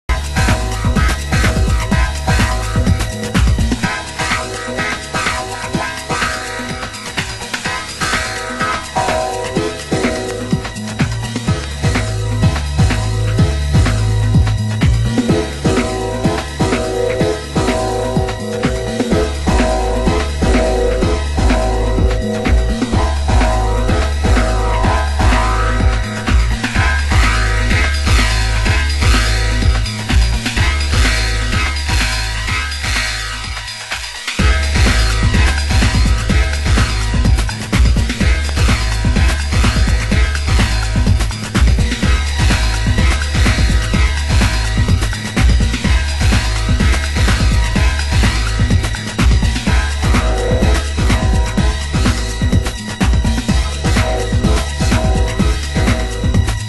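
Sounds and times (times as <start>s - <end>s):
jazz music: 0.1s - 56.6s.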